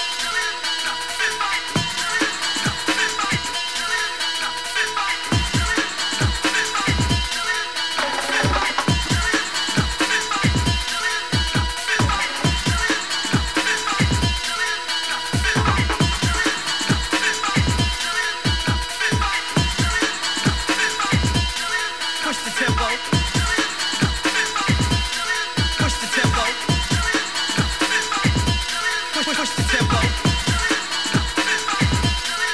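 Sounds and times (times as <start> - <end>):
drum and bass music from blue vinyl record: 0.0 - 32.5
bass funk music from blue vinyl record: 5.3 - 14.6, 15.2 - 21.6, 22.7 - 32.5.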